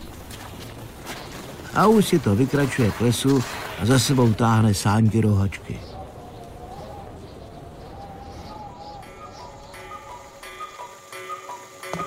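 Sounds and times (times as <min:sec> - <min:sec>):
speech: 0:01.8 - 0:05.9
cuckoo clock cuckoo calls: 0:05.2 - 0:12.0
cuckoo clock ticking: 0:09.0 - 0:12.0.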